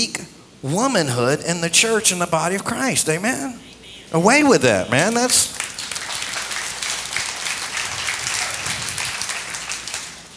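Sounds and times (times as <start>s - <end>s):
speech: 0.0s - 5.6s
audience clapping: 3.4s - 10.3s.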